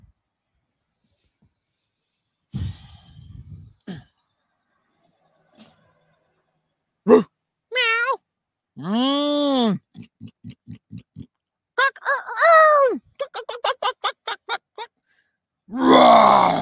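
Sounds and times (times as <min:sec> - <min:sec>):
person imitating a lion's roar with their voice: 0:07.1 - 0:08.2, 0:08.8 - 0:13.4, 0:15.7 - 0:16.6.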